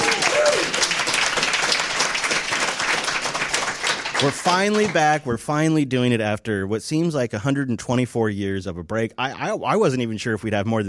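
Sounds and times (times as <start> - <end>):
audience applause: 0.0 - 5.2
speech: 4.2 - 10.8.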